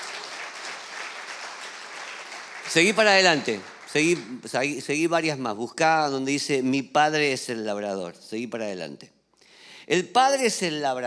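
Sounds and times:
audience applause: 0.0s - 4.5s
speech: 2.7s - 9.2s, 9.9s - 11.0s.

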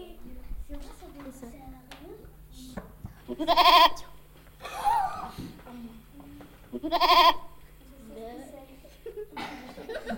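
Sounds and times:
goat bleating: 3.3s - 4.0s, 6.7s - 7.6s
laughter: 8.9s - 10.1s.

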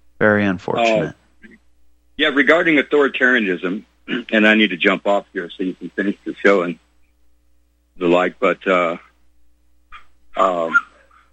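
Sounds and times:
speech: 0.2s - 1.6s, 2.2s - 6.8s, 8.0s - 9.1s, 10.4s - 10.9s
dog barking: 9.9s - 11.3s.

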